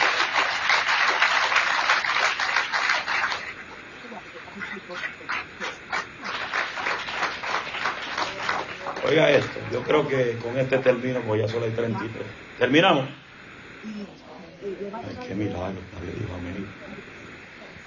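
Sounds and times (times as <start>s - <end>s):
audience applauding: 0.0s - 3.8s, 4.8s - 10.9s
speech: 9.1s - 13.2s, 15.4s - 17.0s.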